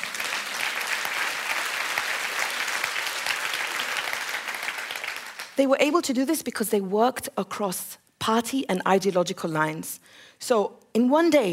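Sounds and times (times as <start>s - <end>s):
audience clapping: 0.0s - 5.6s
speech: 5.6s - 11.5s.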